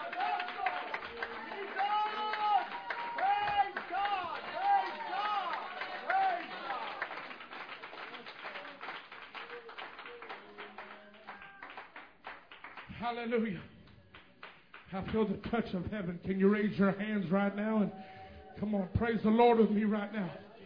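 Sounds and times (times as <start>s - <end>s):
audience hand clapping in praise: 0.0s - 13.2s, 14.1s - 15.6s
speech: 13.1s - 13.7s, 14.9s - 20.4s.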